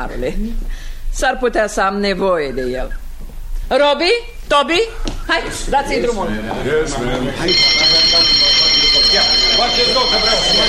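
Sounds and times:
speech: 0.0 - 3.0, 3.7 - 10.6
fire bell ringing: 7.4 - 10.6.

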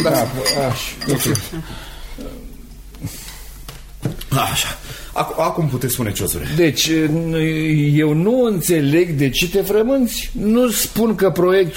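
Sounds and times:
glass of water clinking against dishware: 0.0 - 1.5
speech: 0.0 - 2.4, 3.0 - 3.2, 4.3 - 11.7.

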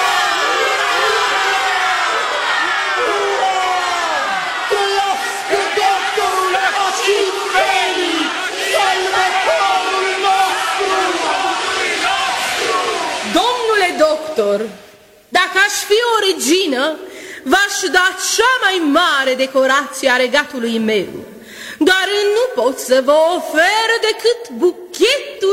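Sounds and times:
crowd applauding: 0.0 - 14.8
speech: 15.9 - 25.5.

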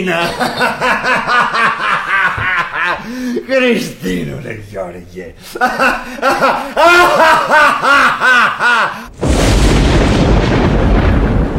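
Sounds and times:
speech: 0.0 - 2.0, 3.0 - 9.1
laughter: 0.0 - 3.5, 5.4 - 9.1
thunder: 9.1 - 11.5.

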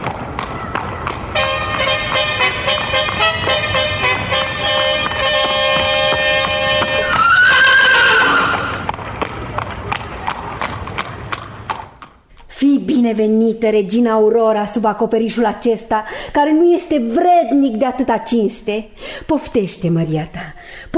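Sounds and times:
hooves of a horse-drawn royal carriage clip-clopping: 0.0 - 12.5
horse of a royal carriage whinnying: 6.2 - 8.9
speech: 13.0 - 20.9.

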